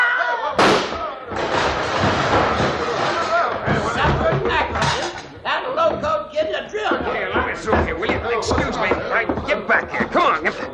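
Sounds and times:
excited crowd chatter and commotion: 0:00.0 - 0:10.7
gunshot: 0:00.6 - 0:03.0
speech: 0:06.8 - 0:10.7.

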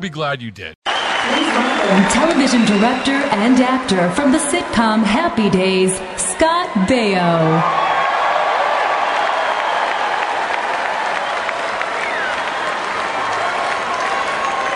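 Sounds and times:
speech: 0:00.0 - 0:07.8
audience applause welcoming a speaker at an evening event: 0:00.9 - 0:04.6, 0:07.6 - 0:14.7.

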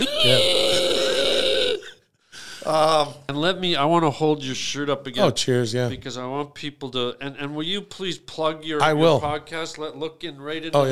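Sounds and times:
long loud burp: 0:00.0 - 0:01.9
speech: 0:00.2 - 0:00.5, 0:02.7 - 0:10.9.

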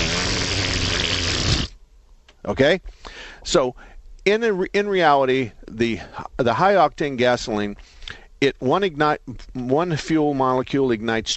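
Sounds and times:
untied balloon deflating as it flies off: 0:00.0 - 0:01.8
speech: 0:02.4 - 0:11.3.

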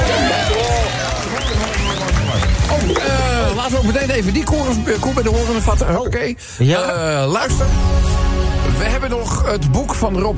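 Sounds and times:
applause: 0:00.0 - 0:05.6
speech: 0:03.8 - 0:10.3.

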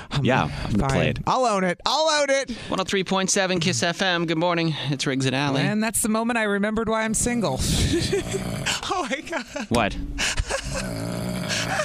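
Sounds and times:
speech: 0:00.2 - 0:11.8
person snoring: 0:07.6 - 0:09.0, 0:10.5 - 0:11.8.

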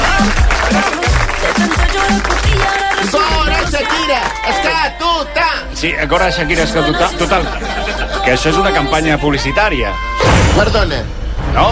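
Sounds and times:
applause: 0:00.0 - 0:04.6
speech: 0:04.8 - 0:11.7
laughter: 0:06.8 - 0:08.9.

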